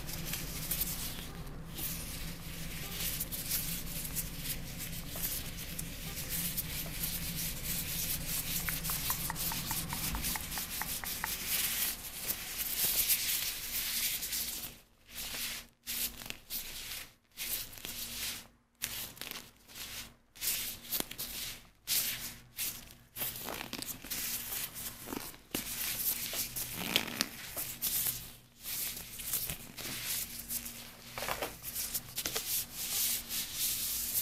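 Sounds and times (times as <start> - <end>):
low hum: 0.0 - 12.5
vinyl gloves rubbing and rustling with hand movements: 0.0 - 34.2.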